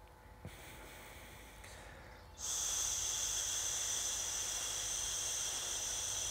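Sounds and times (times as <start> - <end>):
quiet breath: 0.2 - 6.2
hissing exhale through teeth: 2.4 - 6.2.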